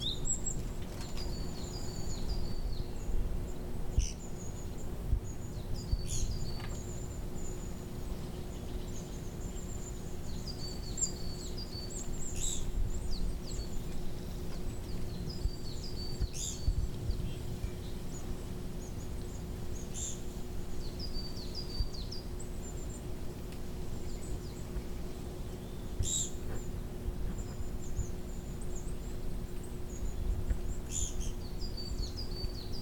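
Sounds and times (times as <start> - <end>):
small birds calling: 0.0 - 32.7.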